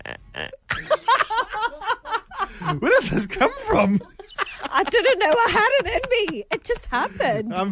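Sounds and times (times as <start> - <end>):
person imitating a hippo's call: 0.0 - 0.7
laughter: 0.7 - 7.5
speech: 2.7 - 4.1, 4.9 - 7.7.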